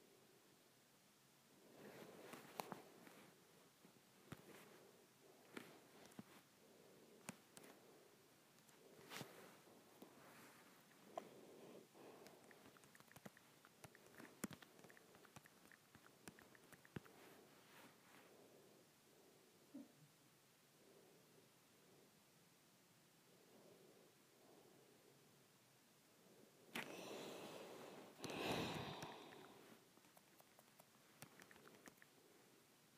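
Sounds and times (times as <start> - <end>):
soft rustling hiss: 0.0 - 32.9
fingers tapping on an iPad screen: 12.2 - 17.1, 30.0 - 32.1.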